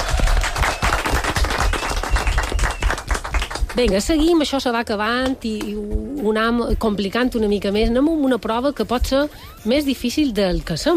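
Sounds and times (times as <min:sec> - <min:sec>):
crowd applauding: 0:00.0 - 0:04.0
speech: 0:03.8 - 0:10.9.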